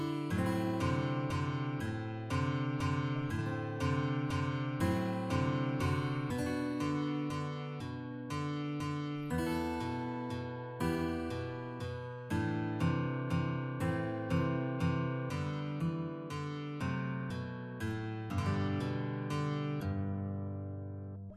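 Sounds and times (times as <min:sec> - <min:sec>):
waltz played as a guitar duet: 0:00.0 - 0:21.3.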